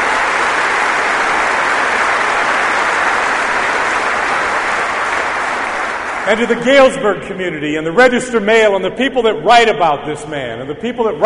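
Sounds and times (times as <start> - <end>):
audience applause: 0.0 - 6.9
speech: 6.3 - 11.2.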